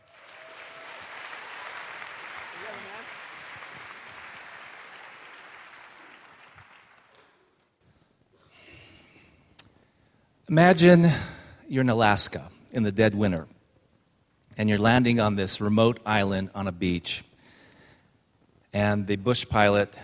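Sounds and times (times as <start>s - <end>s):
audience applause: 0.0s - 7.5s
speech: 10.5s - 13.5s, 14.6s - 17.3s, 18.7s - 20.0s.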